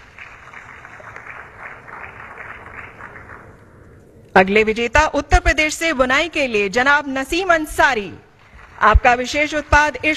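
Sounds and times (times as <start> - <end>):
audience applause: 0.0 - 3.7, 8.4 - 10.1
speech: 4.4 - 8.2, 8.8 - 10.1.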